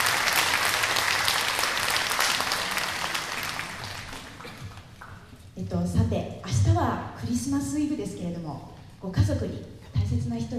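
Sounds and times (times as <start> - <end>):
audience applause for the orchestra: 0.0 - 5.2
speech: 5.6 - 10.5.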